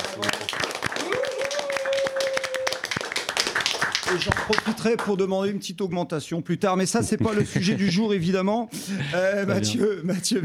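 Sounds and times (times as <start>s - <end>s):
audience clapping: 0.0s - 5.3s
speech: 4.1s - 10.4s
laughter: 6.9s - 10.4s.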